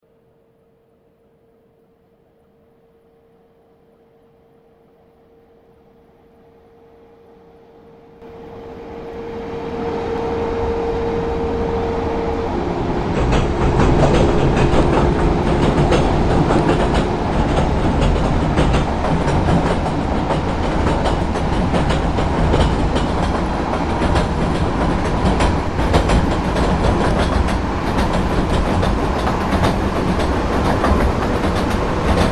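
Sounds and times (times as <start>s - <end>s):
ICE1 train passing over railway switches: 8.2s - 32.2s.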